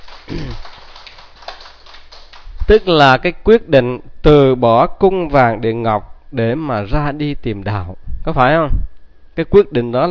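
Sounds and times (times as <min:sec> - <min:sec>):
audience applause: 0:00.0 - 0:02.5
speech: 0:02.7 - 0:10.0.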